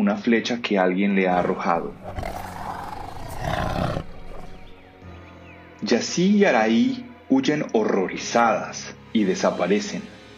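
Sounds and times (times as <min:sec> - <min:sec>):
speech: 0:00.1 - 0:02.4, 0:05.8 - 0:10.2
jaguar roaring: 0:01.3 - 0:04.9.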